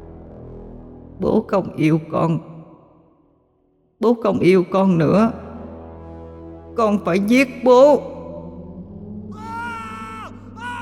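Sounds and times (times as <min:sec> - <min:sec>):
speech: 0:01.2 - 0:02.5, 0:04.0 - 0:05.4, 0:06.8 - 0:08.1
terrified screaming from inside a car: 0:09.3 - 0:10.8.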